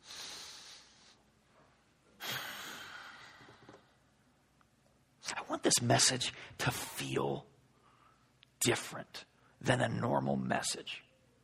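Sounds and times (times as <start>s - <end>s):
deep breath: 0.0s - 1.2s, 2.2s - 3.8s, 7.7s - 8.3s
speech: 5.5s - 7.5s, 8.6s - 11.1s.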